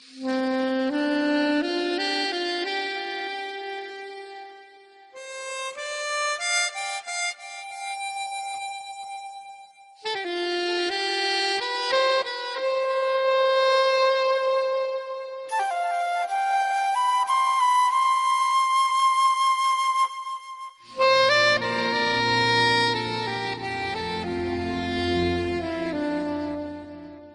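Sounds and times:
flute: 0.0s - 27.3s.

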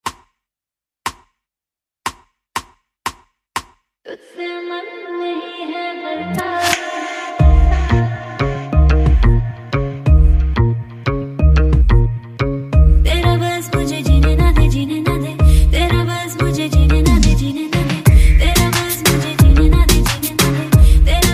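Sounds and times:
reggaeton music: 4.4s - 21.3s.

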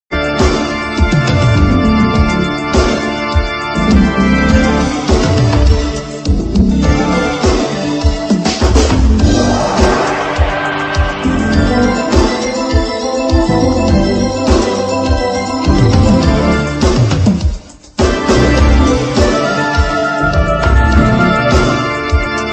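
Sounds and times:
advertising music: 0.1s - 22.5s.

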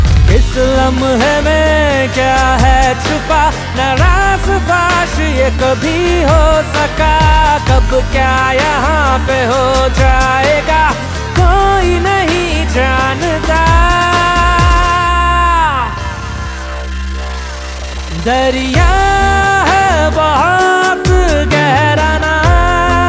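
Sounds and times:
man's voice: 0.2s - 17.0s, 18.0s - 23.0s.

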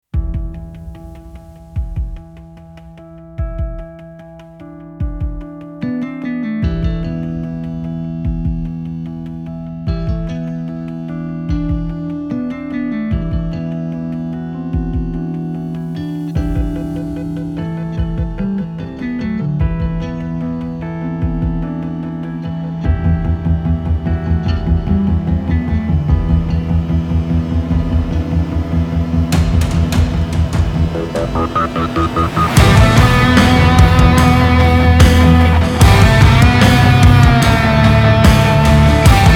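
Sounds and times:
instrumental theme music: 0.1s - 39.3s.

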